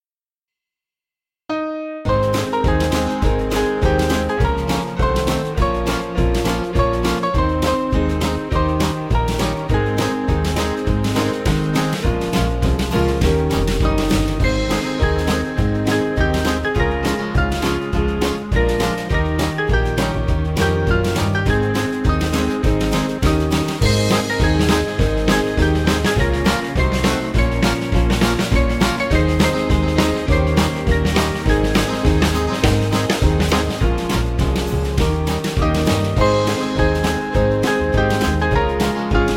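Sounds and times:
band playing: 2.1 - 39.3.

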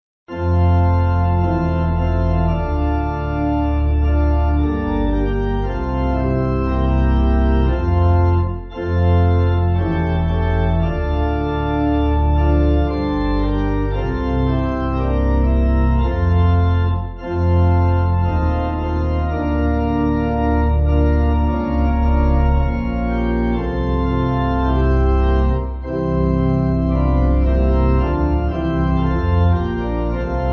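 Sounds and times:
church pipe organ backing music: 0.3 - 30.5.

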